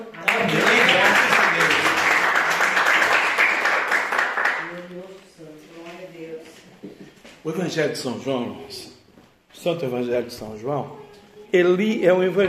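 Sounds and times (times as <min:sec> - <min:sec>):
audience applause: 0:00.2 - 0:04.7
speech: 0:07.5 - 0:08.9, 0:09.6 - 0:12.4.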